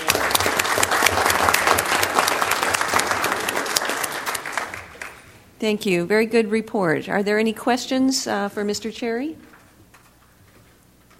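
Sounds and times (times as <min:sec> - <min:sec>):
applause: 0:00.0 - 0:05.3
speech: 0:05.6 - 0:09.5.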